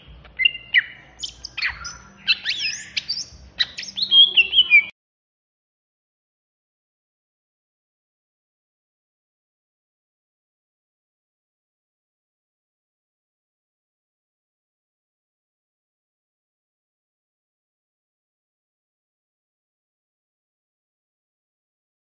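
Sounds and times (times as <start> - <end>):
greater green leafbird singing in an agitated intense style in Banyuwangi: 0.4 - 4.9.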